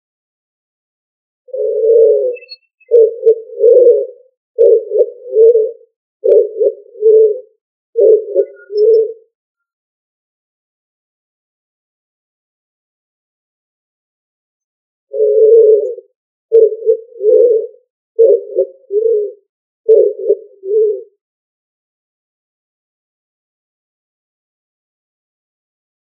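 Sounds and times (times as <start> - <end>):
pigeon cooing: 1.5 - 9.3, 15.1 - 21.2.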